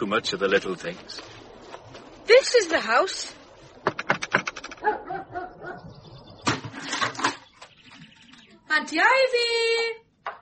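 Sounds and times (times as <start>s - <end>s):
speech: 0.0s - 1.4s, 2.3s - 4.0s, 8.7s - 10.0s
dog barking and yelping: 4.8s - 5.9s.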